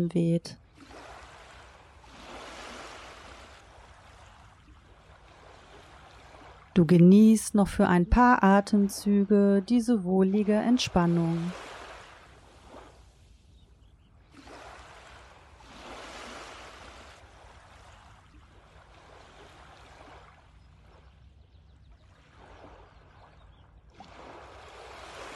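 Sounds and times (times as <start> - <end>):
speech: 0.0 - 0.6, 6.8 - 11.7
ocean waves washing onto beach: 0.7 - 6.8, 10.4 - 13.4, 14.3 - 21.1, 24.0 - 25.3.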